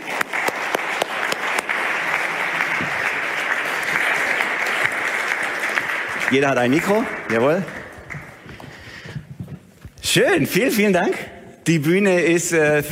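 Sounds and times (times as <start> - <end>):
crowd clapping: 0.0 - 9.5
speech: 6.3 - 7.8, 10.1 - 12.9.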